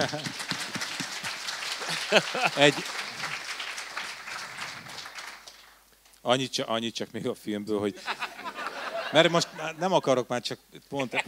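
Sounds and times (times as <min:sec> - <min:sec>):
speech: 0:00.0 - 0:00.4, 0:01.9 - 0:03.0, 0:06.2 - 0:08.2, 0:09.1 - 0:11.2
laughter: 0:00.0 - 0:03.5, 0:08.0 - 0:10.0, 0:11.0 - 0:11.2
applause: 0:00.0 - 0:05.8.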